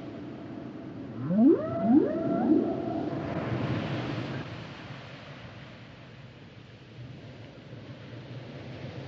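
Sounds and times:
whale song upsweeps: 0:01.2 - 0:04.4.

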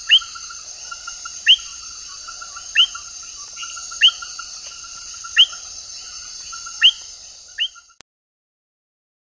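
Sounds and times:
Vanzolinius discodactylus frog calling in the Ecuadorian Amazon: 0:00.0 - 0:08.0.

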